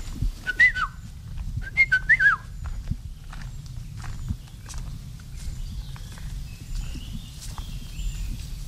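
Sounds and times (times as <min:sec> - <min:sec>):
soft footsteps: 0:00.0 - 0:08.6
yellow-and-black canopy bird whistling fluty phrases: 0:00.4 - 0:01.0, 0:01.6 - 0:02.6
faint chirps: 0:02.0 - 0:08.6.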